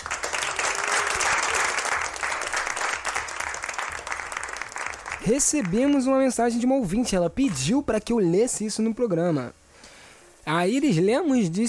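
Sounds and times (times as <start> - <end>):
crowd applauding: 0.0 - 6.6
speech: 5.3 - 9.6, 10.5 - 11.6.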